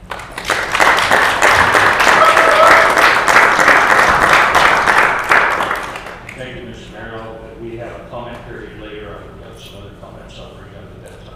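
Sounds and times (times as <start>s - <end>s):
meeting audience round of applause: 0.0s - 6.4s.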